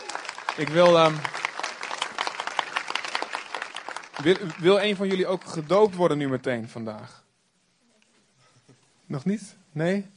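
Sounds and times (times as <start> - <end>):
audience applause: 0.0 - 6.3
speech: 0.6 - 1.3, 4.2 - 7.2, 9.1 - 10.1.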